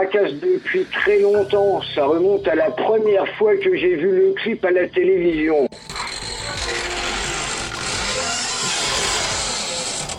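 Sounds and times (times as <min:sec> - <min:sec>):
speech: 0:00.0 - 0:05.8
door creaking: 0:05.7 - 0:10.1.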